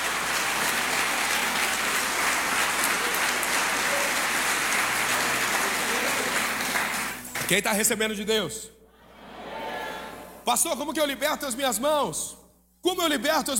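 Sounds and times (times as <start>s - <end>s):
applause: 0.0s - 7.8s
speech: 7.5s - 8.8s, 10.5s - 13.5s.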